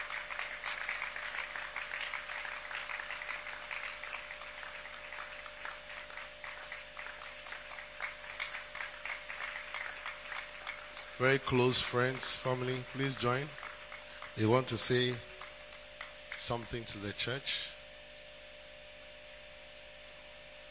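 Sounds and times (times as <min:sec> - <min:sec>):
audience clapping to welcome family: 0:00.0 - 0:17.0
speech: 0:11.2 - 0:13.6, 0:14.4 - 0:15.3, 0:16.4 - 0:17.7.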